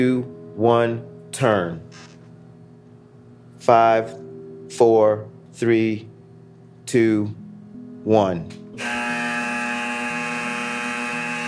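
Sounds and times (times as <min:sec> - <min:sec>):
speech: 0:00.0 - 0:02.1, 0:03.6 - 0:06.1, 0:06.9 - 0:07.4, 0:08.0 - 0:09.0
missile launch klaxon alarm: 0:08.8 - 0:11.4.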